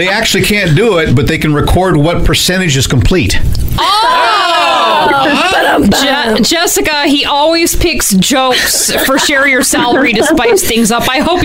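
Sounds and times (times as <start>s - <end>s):
speech: 0.0s - 11.4s
crowd cheering and whooping: 3.8s - 6.1s
laughter: 3.8s - 6.6s, 8.4s - 11.4s.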